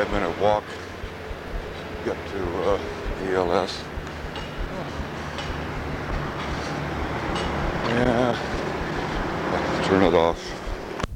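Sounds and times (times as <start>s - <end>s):
speech: 0.0s - 0.9s, 2.0s - 3.9s, 7.9s - 8.5s, 9.9s - 10.6s
street traffic going by: 0.0s - 11.1s.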